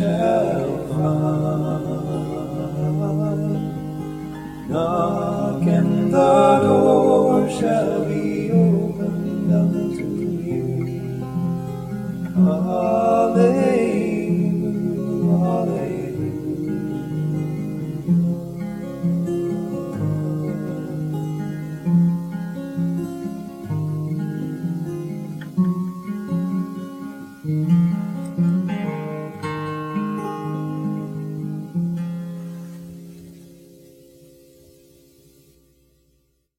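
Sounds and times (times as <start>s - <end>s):
two voices: 0.0s - 22.0s
guitars: 0.0s - 36.3s.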